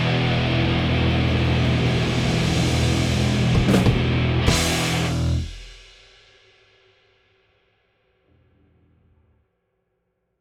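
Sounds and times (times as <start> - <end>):
guitars: 0.0 - 5.7.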